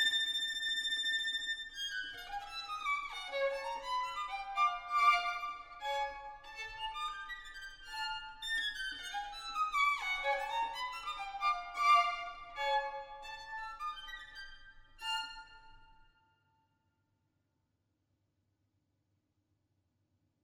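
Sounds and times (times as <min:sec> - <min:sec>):
string quartet: 0:00.0 - 0:15.8.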